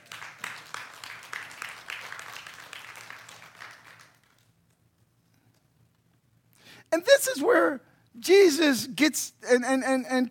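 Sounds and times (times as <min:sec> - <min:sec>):
audience clapping: 0:00.0 - 0:04.8
speech: 0:06.9 - 0:10.2.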